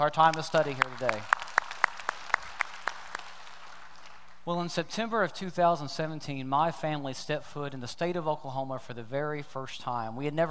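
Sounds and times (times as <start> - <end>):
speech: 0.0 - 1.4, 4.5 - 10.4
church congregation hand claps in North Garnett: 0.2 - 4.4.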